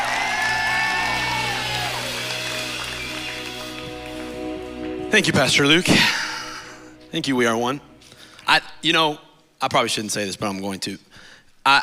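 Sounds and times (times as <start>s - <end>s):
crowd cheering and whooping: 0.0s - 4.2s
audience clapping: 0.0s - 5.2s
speech: 5.1s - 6.2s, 7.1s - 7.9s, 8.5s - 11.8s.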